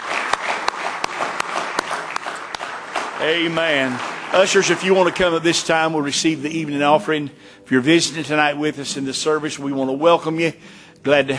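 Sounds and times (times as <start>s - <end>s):
audience hand clapping: 0.0s - 7.0s
speech: 3.2s - 11.3s.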